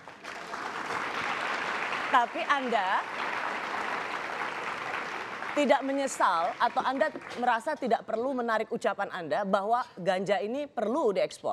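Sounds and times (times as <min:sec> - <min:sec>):
studio audience applause: 0:00.0 - 0:07.5
speech: 0:02.1 - 0:03.5, 0:05.6 - 0:11.5.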